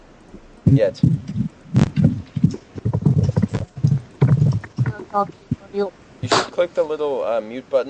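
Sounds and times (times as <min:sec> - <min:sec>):
speech: 0:00.7 - 0:01.4, 0:05.2 - 0:07.8
loud keyboard typing: 0:00.7 - 0:05.7.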